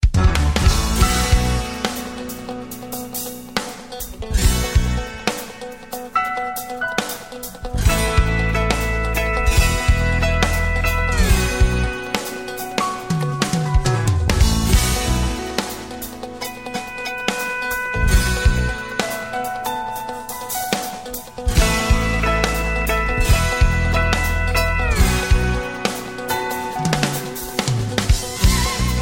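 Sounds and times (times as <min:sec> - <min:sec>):
country music: 0:00.0 - 0:29.0.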